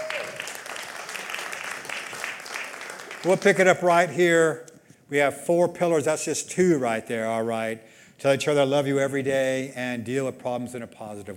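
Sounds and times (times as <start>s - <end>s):
audience applause for a speaker: 0.0s - 3.7s
speech: 3.2s - 11.3s.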